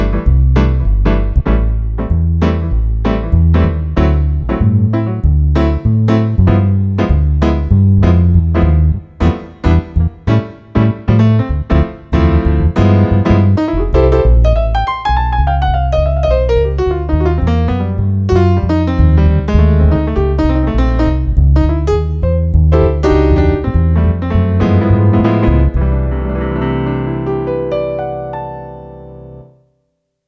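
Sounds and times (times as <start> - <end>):
sound module piano and bass factory patch: 0.0 - 29.7.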